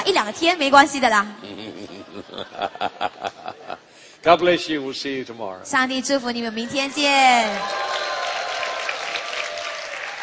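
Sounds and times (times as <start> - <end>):
speech: 0.1 - 3.6, 4.2 - 8.1
laughter: 1.2 - 4.0
audience applause: 7.2 - 10.2.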